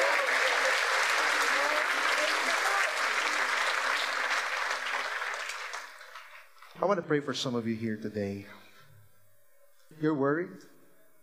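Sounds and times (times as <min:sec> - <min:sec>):
audience applause: 0:00.0 - 0:06.7
speech: 0:06.8 - 0:08.6, 0:10.0 - 0:10.7.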